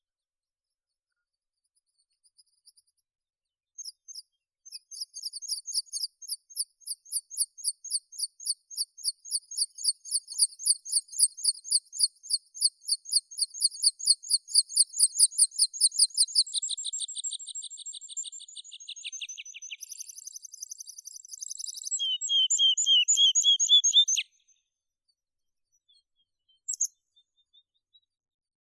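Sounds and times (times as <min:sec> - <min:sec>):
meadow pipit Anthus pratensis singing: 0:04.9 - 0:24.4.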